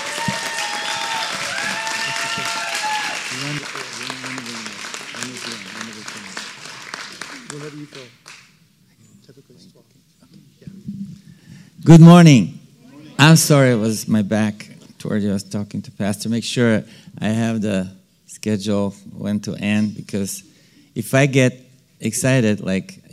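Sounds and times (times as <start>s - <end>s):
congregation clapping in welcome: 0.0s - 8.6s
speech: 11.9s - 12.6s, 13.2s - 23.1s.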